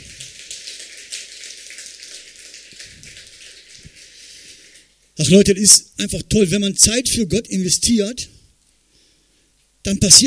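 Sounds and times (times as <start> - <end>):
audience applause: 0.0 - 3.9
speech: 5.2 - 8.3, 9.8 - 10.2.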